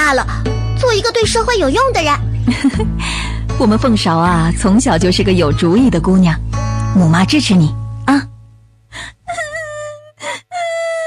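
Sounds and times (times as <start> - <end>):
speech: 0.1 - 8.3
girl crying while held down for foot binding: 9.0 - 11.0.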